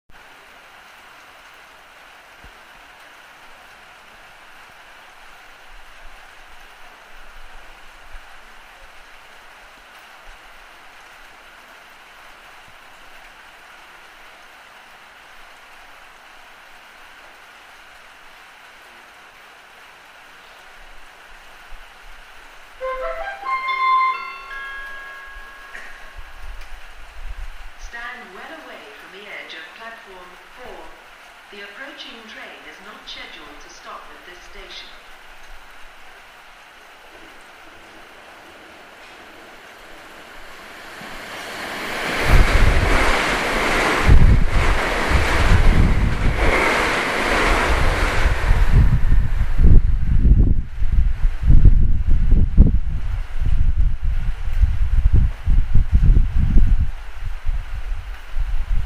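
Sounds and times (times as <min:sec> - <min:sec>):
rain on a railway platform: 0:00.1 - 0:58.8
train at a railway platform: 0:00.1 - 0:58.8.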